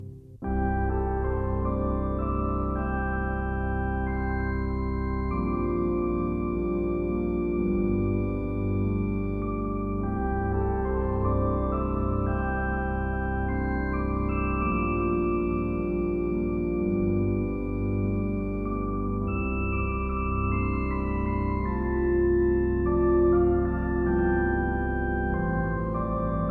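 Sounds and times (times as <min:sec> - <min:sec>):
organ postlude: 0:00.5 - 0:26.4.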